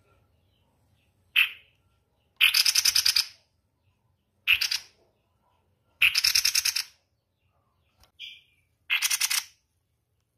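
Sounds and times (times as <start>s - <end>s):
spiderhunter harsh rattling bursts of rapid pulses: 2.4s - 3.4s, 4.4s - 5.0s, 6.0s - 7.0s, 8.2s - 9.6s.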